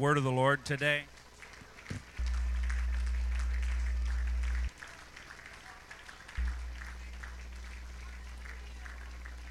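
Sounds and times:
speech: 0.0s - 1.2s
audience clapping: 1.0s - 9.5s.

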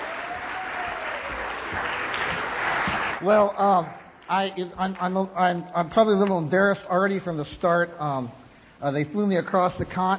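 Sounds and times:
audience applause: 0.0s - 4.1s
speech: 3.2s - 10.1s.

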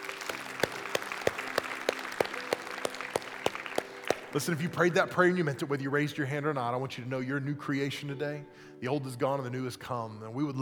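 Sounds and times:
crowd applause: 0.0s - 4.6s
speech: 4.3s - 10.6s.

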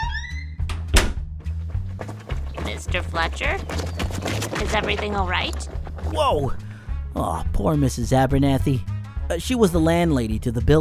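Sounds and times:
door closing: 0.0s - 1.2s
speech: 2.8s - 6.6s, 7.2s - 10.7s.

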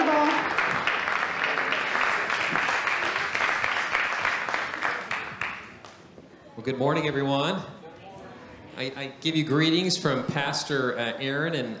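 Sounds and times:
audience clapping: 0.0s - 6.1s
speech: 6.6s - 7.8s, 8.8s - 11.7s.

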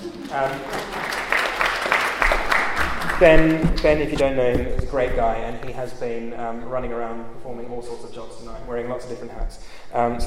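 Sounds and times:
audience applause: 0.0s - 4.1s
speech: 0.3s - 1.0s, 3.2s - 10.2s.

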